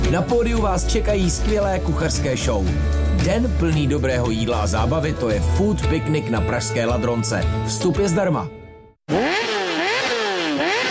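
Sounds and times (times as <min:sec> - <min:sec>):
speech: 0:00.1 - 0:09.5
racing buggy engine revving: 0:09.1 - 0:10.8.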